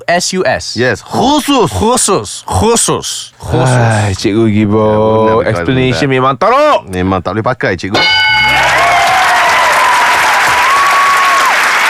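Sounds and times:
speech: 0:00.1 - 0:08.5
clapping: 0:08.6 - 0:11.8.

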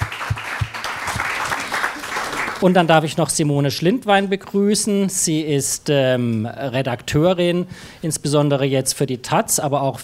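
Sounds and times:
audience applause: 0:00.0 - 0:02.8
speech: 0:02.6 - 0:10.0.

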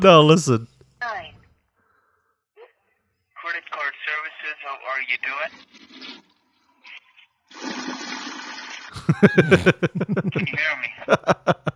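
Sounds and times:
speech: 0:00.0 - 0:00.7, 0:04.7 - 0:06.3, 0:09.0 - 0:11.7
toilet flushing: 0:07.5 - 0:08.9
laughter: 0:09.0 - 0:11.7.

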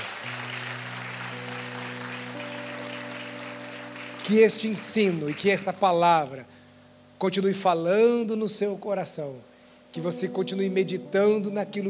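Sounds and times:
audience applause: 0:00.0 - 0:05.7
sustained keyboard chords: 0:00.0 - 0:11.8
speech: 0:04.3 - 0:06.6, 0:07.2 - 0:11.8.

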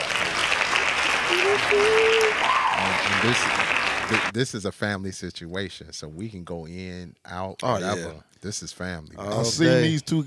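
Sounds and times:
audience hand claps: 0:00.0 - 0:04.3
whoops: 0:01.2 - 0:03.2
brief voices: 0:01.3 - 0:03.2
speech: 0:01.4 - 0:10.2.

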